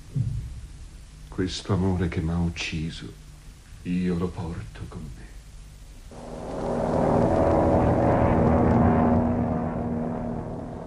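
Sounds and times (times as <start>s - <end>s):
speech: 1.4s - 3.2s, 3.8s - 5.3s
airplane to Chile taking off: 6.1s - 10.8s.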